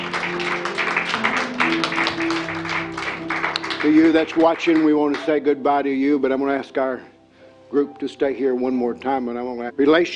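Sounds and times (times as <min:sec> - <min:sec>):
audience hand clapping: 0:00.0 - 0:05.4
speech: 0:03.8 - 0:07.1, 0:07.7 - 0:10.1.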